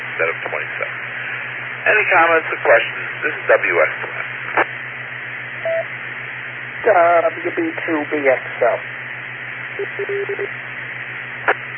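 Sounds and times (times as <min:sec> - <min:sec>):
radio noise hum and hiss: 0:00.0 - 0:11.7
speech: 0:00.2 - 0:01.2, 0:01.9 - 0:04.3, 0:06.8 - 0:09.0, 0:09.8 - 0:10.6
EchoLink connection DTMF touch-tone beeps: 0:05.6 - 0:05.8, 0:09.8 - 0:10.5.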